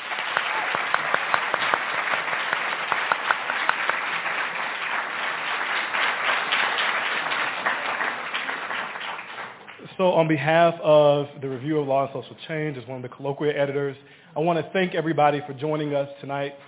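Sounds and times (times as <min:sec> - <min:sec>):
audience applause for panel: 0:00.0 - 0:09.9
speech: 0:10.0 - 0:16.6.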